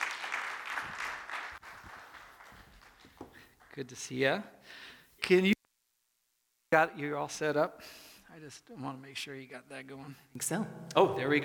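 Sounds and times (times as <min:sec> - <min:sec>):
crowd applauding: 0:00.0 - 0:04.0
speech: 0:03.8 - 0:05.6, 0:06.7 - 0:11.4.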